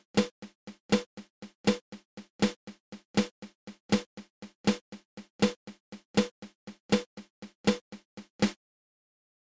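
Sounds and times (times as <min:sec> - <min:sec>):
drum flam accent: 0:00.0 - 0:08.6.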